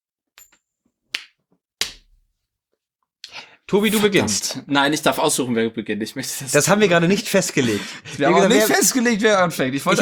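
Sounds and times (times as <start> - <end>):
coin caught and slapped onto a hand: 0.4 - 2.2
speech: 3.7 - 10.0.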